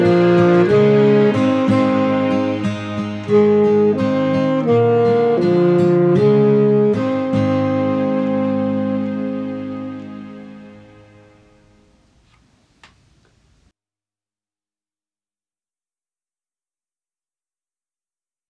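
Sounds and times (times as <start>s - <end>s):
saxophone: 0.0s - 12.0s.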